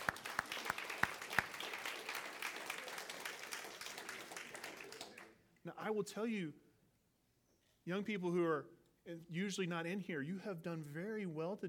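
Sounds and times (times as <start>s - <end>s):
audience applause for Sunday school teachers: 0.0s - 5.3s
speech: 5.6s - 6.6s, 7.9s - 11.6s.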